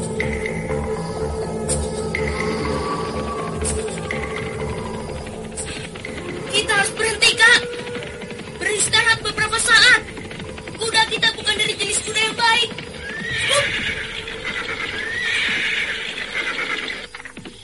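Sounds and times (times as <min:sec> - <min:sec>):
galloping hooves of horses ridden toward the Cipunagara river: 0:00.0 - 0:17.6
horse neighing: 0:02.2 - 0:10.6, 0:12.7 - 0:17.4.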